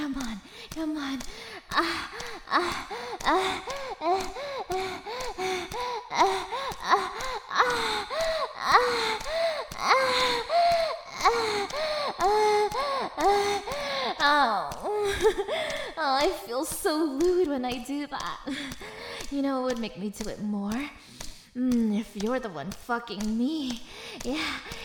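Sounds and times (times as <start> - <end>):
speech: 0.1 - 4.4, 11.3 - 24.8
person panting: 0.4 - 16.0, 18.4 - 19.3, 21.0 - 21.6, 23.8 - 24.8.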